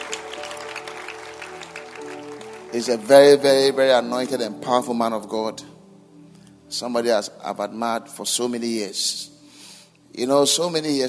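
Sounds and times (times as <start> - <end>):
church congregation clapping hands for the host during a service: 0.0 - 4.4
speech: 2.7 - 5.7, 6.7 - 9.4, 10.2 - 11.0.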